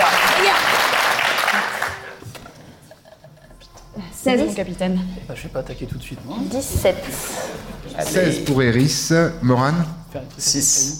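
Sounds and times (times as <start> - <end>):
group applause: 0.0 - 2.2
speech: 4.2 - 10.9.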